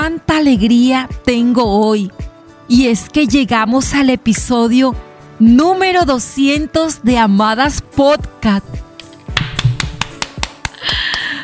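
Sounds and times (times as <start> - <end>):
speech: 0.0 - 8.8
hands clapping: 9.0 - 11.4.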